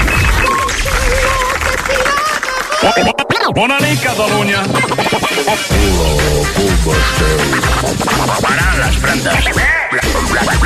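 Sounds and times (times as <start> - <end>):
audience applause: 0.0 - 3.0
speech: 2.9 - 10.6.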